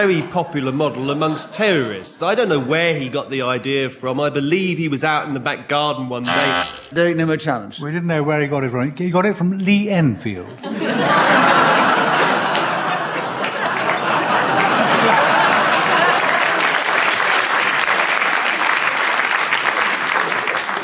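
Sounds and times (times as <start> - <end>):
laughter: 0.0 - 3.4, 10.2 - 17.8
speech: 0.0 - 11.5
audience clapping: 11.7 - 20.8.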